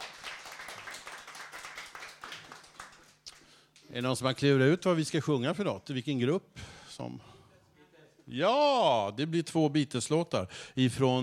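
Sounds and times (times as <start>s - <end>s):
encouraging audience applause: 0.0s - 3.2s
speech: 3.9s - 7.4s, 8.3s - 11.2s.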